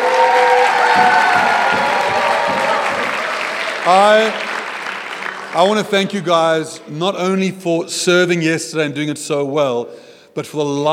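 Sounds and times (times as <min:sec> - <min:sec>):
crowd clapping: 0:00.0 - 0:06.4
speech: 0:03.9 - 0:04.5, 0:05.5 - 0:10.9.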